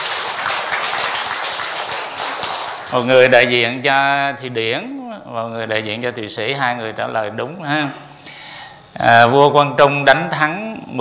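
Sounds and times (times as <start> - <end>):
quiz audience applause: 0.0 - 3.1
speech: 2.9 - 8.1, 9.0 - 10.9.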